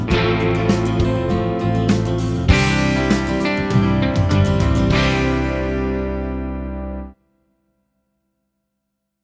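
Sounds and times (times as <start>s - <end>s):
chord progressions with applied chords: 0.0s - 7.2s.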